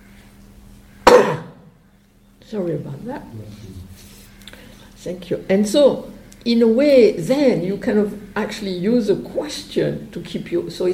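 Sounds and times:
person sneezing: 1.0 - 1.6
speech: 2.5 - 4.1, 5.0 - 10.9.

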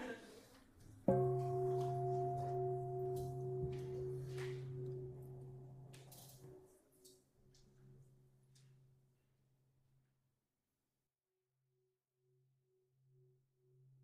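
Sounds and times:
meditation bell ringing: 1.1 - 6.8.

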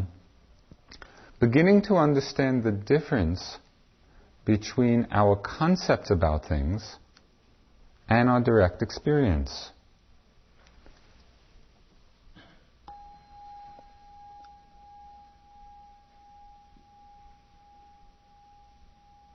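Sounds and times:
speech: 1.4 - 3.6, 4.5 - 7.0, 8.1 - 9.8
bell ringing: 12.9 - 19.3.

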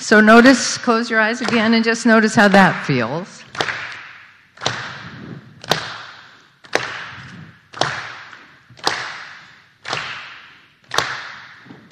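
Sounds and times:
speech: 0.1 - 3.8
rhythmic hand clapping: 1.3 - 11.9
foot stomping: 3.5 - 11.9.

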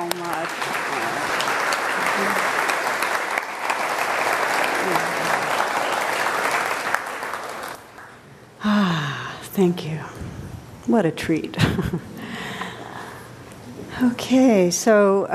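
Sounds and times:
audience applause: 0.0 - 8.2
speech: 9.6 - 10.1, 10.9 - 12.1, 14.0 - 15.3.

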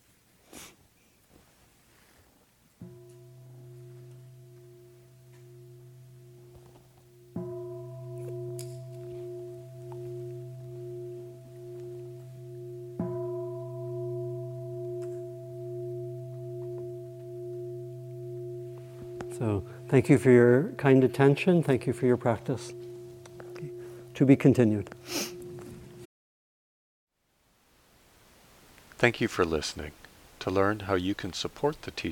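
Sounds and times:
meditation bell ringing: 2.8 - 26.1
speech: 19.4 - 22.9, 24.2 - 25.3, 29.0 - 32.0.

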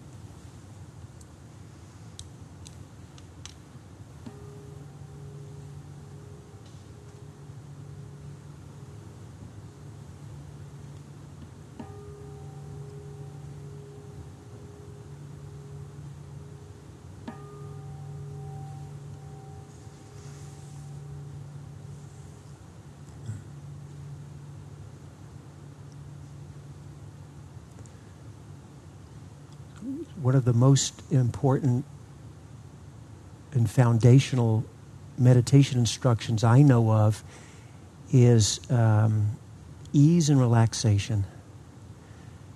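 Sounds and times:
low steady drone: 0.0 - 42.5
meditation bell ringing: 4.2 - 28.1
speech: 29.9 - 31.9, 33.6 - 37.5, 38.1 - 41.4.

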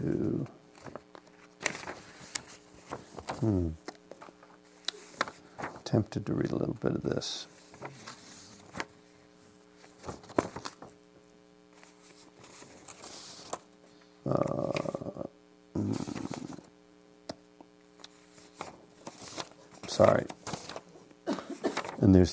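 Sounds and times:
steady low electrical hum: 0.0 - 22.3
pieces of paper being moved: 0.7 - 6.8, 7.4 - 11.0, 11.7 - 13.7, 18.0 - 22.3
speech: 3.4 - 3.8, 5.9 - 7.5
small crackles and taps: 3.8 - 5.3.

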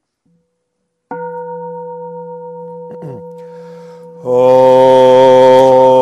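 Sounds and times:
meditation bell being struck: 1.1 - 5.9
speech: 3.0 - 3.3, 4.2 - 4.9.

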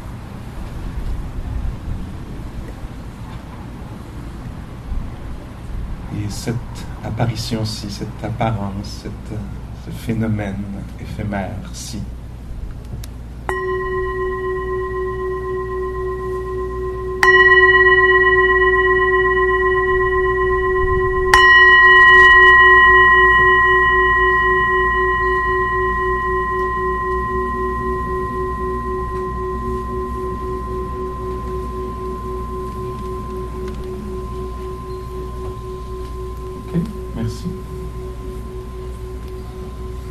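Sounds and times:
speech: 6.2 - 12.2
meditation bell ringing: 13.5 - 40.1.

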